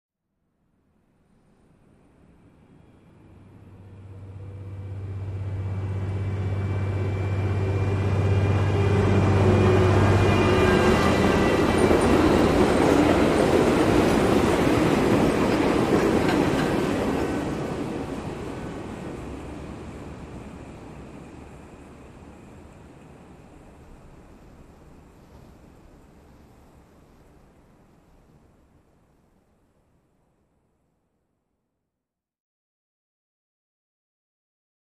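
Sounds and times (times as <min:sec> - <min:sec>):
monorail train: 0:01.5 - 0:27.9.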